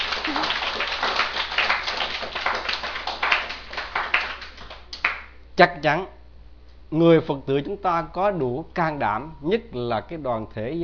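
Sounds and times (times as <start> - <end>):
audience applause: 0.0 - 5.3
speech: 5.6 - 6.2, 6.9 - 10.8.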